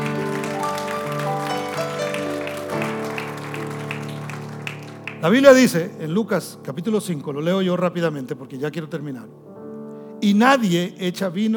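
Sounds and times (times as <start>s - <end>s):
sustained instrumental chords: 0.0s - 5.5s
audience applause: 0.0s - 5.8s
speech: 5.2s - 9.5s, 10.2s - 11.5s.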